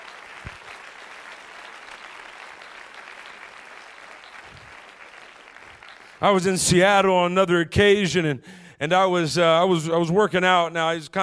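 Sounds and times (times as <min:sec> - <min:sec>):
large crowd clapping: 0:00.0 - 0:06.7
speech: 0:06.2 - 0:11.2.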